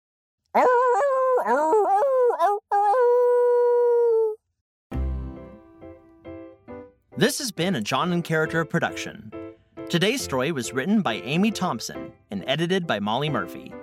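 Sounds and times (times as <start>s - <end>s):
speech: 0.5s - 0.8s, 7.2s - 13.8s
person's voice imitating a wolf howl: 0.6s - 4.4s.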